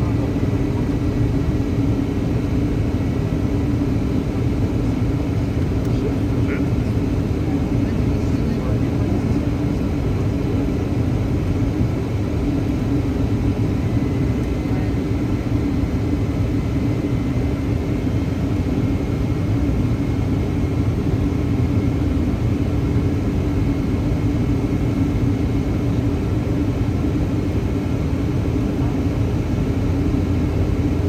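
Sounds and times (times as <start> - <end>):
Boeing 757 cabin engine roar in flight: 0.0 - 31.0.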